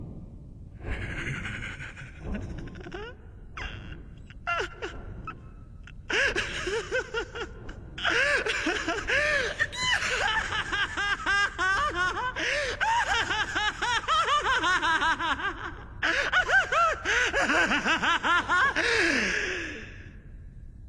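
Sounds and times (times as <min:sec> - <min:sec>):
person laughing crazily: 0:00.8 - 0:05.4, 0:06.0 - 0:19.8.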